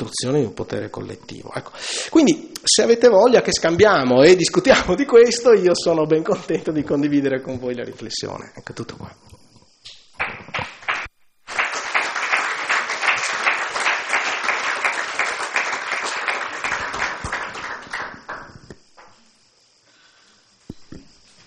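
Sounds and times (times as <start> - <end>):
speech: 0.1 - 9.4
audience applause: 10.2 - 18.7.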